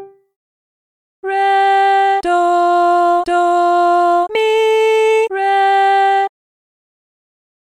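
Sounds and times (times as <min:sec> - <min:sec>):
person singing medium solfa training exercise: 0:01.3 - 0:06.3.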